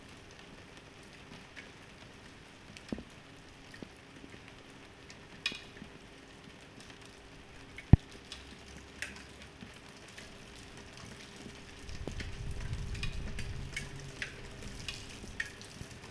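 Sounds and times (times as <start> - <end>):
rain in a garden: 0.0 - 16.0.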